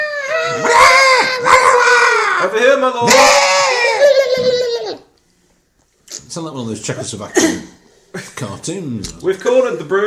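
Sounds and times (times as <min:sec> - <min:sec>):
voice imitating a screaming goblin: 0:00.0 - 0:05.1
speech: 0:02.4 - 0:03.5, 0:06.4 - 0:10.0.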